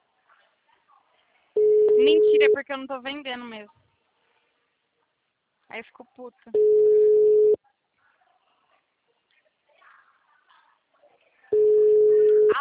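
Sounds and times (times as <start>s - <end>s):
telephone busy signal on a call line: 1.6s - 2.6s, 6.6s - 7.6s, 11.6s - 12.6s
speech: 2.4s - 3.8s, 5.7s - 7.1s.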